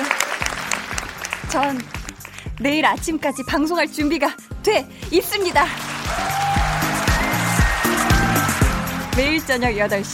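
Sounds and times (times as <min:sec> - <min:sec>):
applause sound effect: 0:00.0 - 0:02.7, 0:05.6 - 0:09.6
speech: 0:01.5 - 0:02.0, 0:02.6 - 0:06.4, 0:09.2 - 0:10.1.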